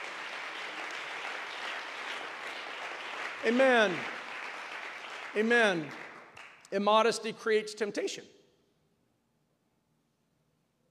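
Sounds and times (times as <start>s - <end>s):
people clapping: 0.0s - 7.2s
speech: 3.4s - 4.1s, 5.3s - 6.0s, 6.7s - 8.4s.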